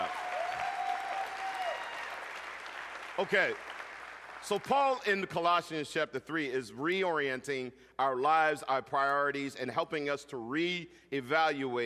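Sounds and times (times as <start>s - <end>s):
audience applause: 0.0s - 4.6s
speech: 3.2s - 3.7s, 4.4s - 11.8s.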